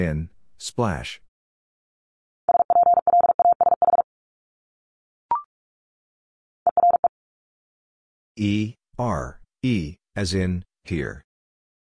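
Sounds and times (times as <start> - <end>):
speech: 0.0 - 1.2, 8.4 - 11.3
Morse code tones at 45 wpm: 2.5 - 4.0, 6.7 - 7.1.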